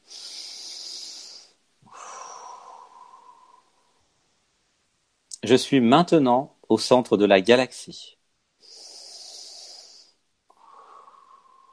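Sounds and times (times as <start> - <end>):
deep breath: 0.0 - 4.3, 8.6 - 11.7
speech: 5.4 - 8.2.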